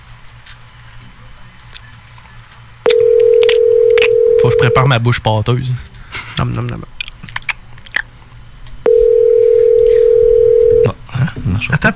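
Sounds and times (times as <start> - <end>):
unanswered telephone call ringing tone: 2.9 - 5.0, 8.9 - 11.0
speech: 4.4 - 7.0, 11.6 - 11.9.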